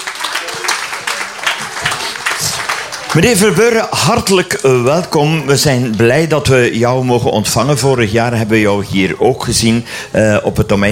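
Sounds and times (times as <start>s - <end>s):
applause for a visiting alderman at a family radio event: 0.0s - 5.0s
speech: 3.2s - 10.8s.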